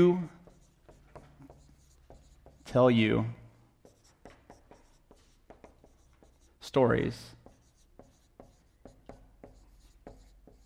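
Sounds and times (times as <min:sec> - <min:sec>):
speech: 0:00.0 - 0:00.4, 0:02.7 - 0:03.4, 0:06.7 - 0:07.4
marker strokes squeaking on a board: 0:00.4 - 0:02.8, 0:03.8 - 0:06.6, 0:07.4 - 0:10.6.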